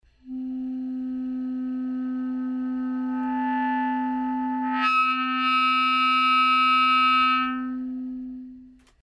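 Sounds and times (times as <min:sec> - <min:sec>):
harmonics: 0:00.2 - 0:09.0.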